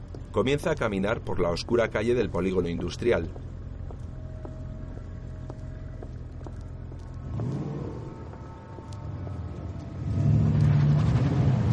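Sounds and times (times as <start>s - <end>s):
speech: 0.4s - 3.6s
car engine accelerating as it turns and drives off down an industrial-estate street: 4.2s - 11.7s.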